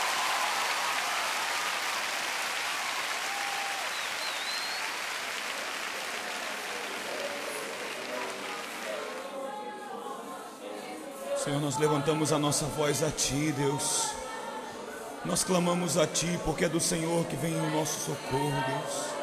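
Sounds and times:
crowd applauding: 0.0 - 9.4
faint voices and whistles: 3.8 - 5.0
speech: 11.4 - 14.2, 15.2 - 19.1.

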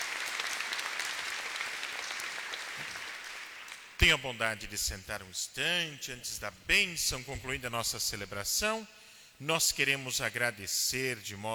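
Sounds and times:
audience clapping: 0.0 - 4.3
speech: 4.0 - 11.5.

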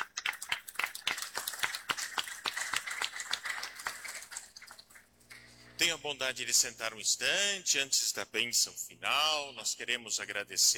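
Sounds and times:
people clapping: 0.0 - 5.5
speech: 5.8 - 10.7.

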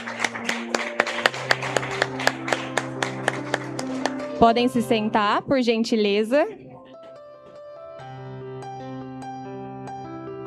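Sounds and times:
steady rhythmic clapping in unison: 0.0 - 4.9
speech: 4.4 - 6.6.

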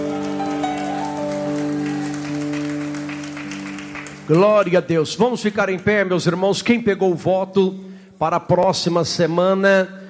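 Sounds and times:
audience clapping: 0.0 - 6.1
speech: 4.3 - 10.0.

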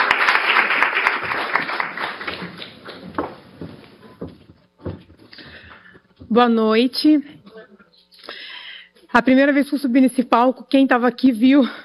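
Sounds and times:
audience applause: 0.0 - 3.4
speech: 6.4 - 7.3, 9.2 - 11.8.

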